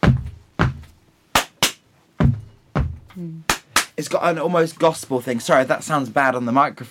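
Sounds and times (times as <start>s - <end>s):
stamping and clapping a beat: 0.0s - 4.0s
speech: 3.2s - 6.8s.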